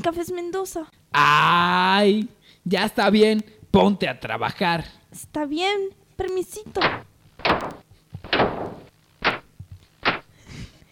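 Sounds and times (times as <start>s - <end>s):
speech: 0.0s - 7.8s
malfunctioning door banging: 6.8s - 9.5s.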